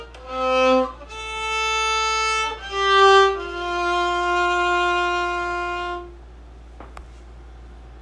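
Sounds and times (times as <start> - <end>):
Celtic violin playing: 0.0 - 6.2.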